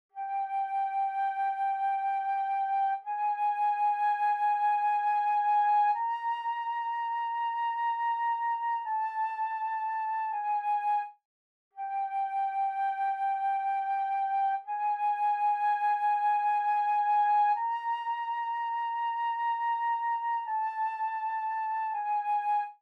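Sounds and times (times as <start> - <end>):
flute: 0.1 - 11.2, 11.8 - 22.8.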